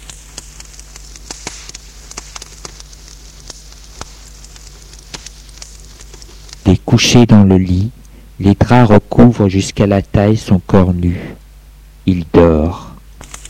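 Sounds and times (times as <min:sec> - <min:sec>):
fire crackling in a fireplace: 0:00.0 - 0:13.4
speech: 0:06.7 - 0:11.4, 0:12.0 - 0:12.9.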